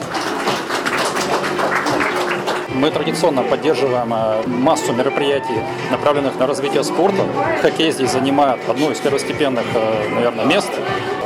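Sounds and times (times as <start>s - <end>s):
audience applause: 0.0s - 2.7s
speech: 2.8s - 11.1s.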